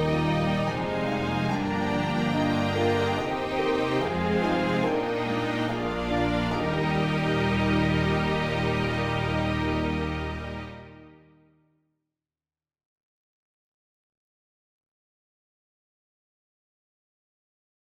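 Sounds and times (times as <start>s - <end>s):
chorale trio: 0.0s - 11.0s.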